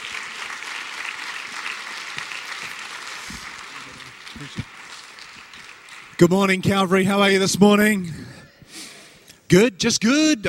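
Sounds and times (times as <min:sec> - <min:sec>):
Calvary church congregation in Vancouver clapping to welcome a pastor: 0:00.0 - 0:07.4
speech: 0:04.4 - 0:04.7, 0:06.2 - 0:08.3, 0:09.5 - 0:10.4.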